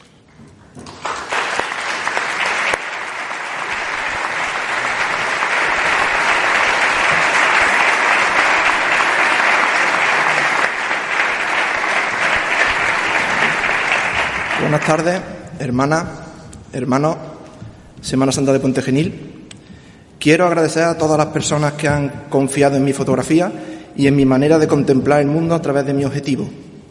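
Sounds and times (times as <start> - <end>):
warm applause from audience: 0.8 - 15.3
speech: 14.9 - 17.4, 18.0 - 19.3, 20.2 - 26.6.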